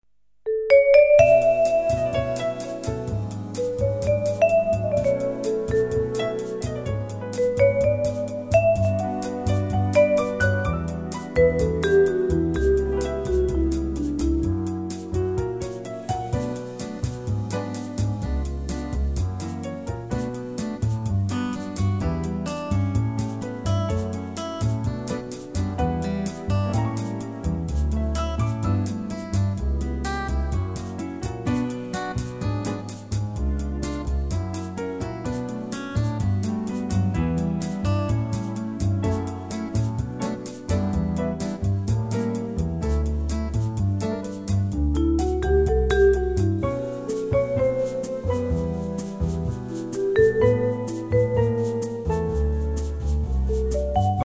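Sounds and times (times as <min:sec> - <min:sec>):
bossa nova backing track in B minor for male vocals: 0:00.5 - 0:54.2.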